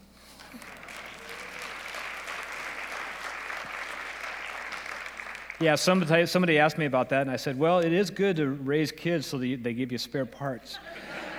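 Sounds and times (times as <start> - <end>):
audience applause: 0.3 - 6.1
speech: 5.6 - 11.1
laughter: 10.8 - 11.3.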